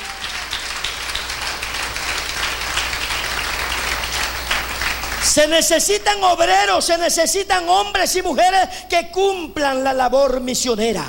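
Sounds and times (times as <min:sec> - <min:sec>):
audience applause: 0:00.0 - 0:05.7
speech: 0:05.3 - 0:11.0.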